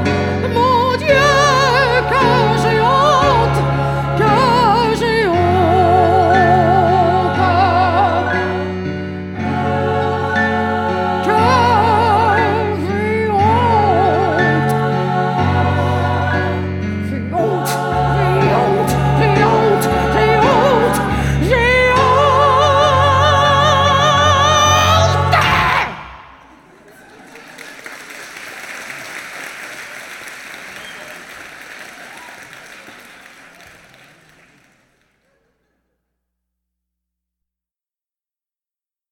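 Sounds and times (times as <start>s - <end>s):
person singing in musical theatre as a character: 0.0s - 8.8s, 9.4s - 26.4s.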